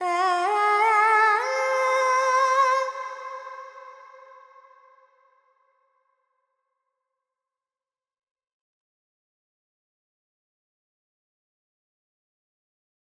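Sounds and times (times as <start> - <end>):
Carnatic female alap in Purvi Kalyani: 0.0 - 3.7.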